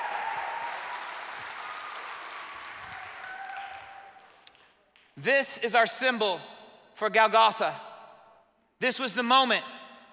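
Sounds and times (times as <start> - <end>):
audience clapping: 0.0 - 5.2
speech: 5.2 - 7.9, 8.8 - 9.7.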